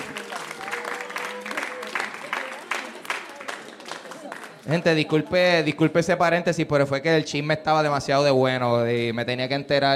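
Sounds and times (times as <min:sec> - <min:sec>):
audience applause: 0:00.0 - 0:05.2
speech: 0:04.7 - 0:09.9.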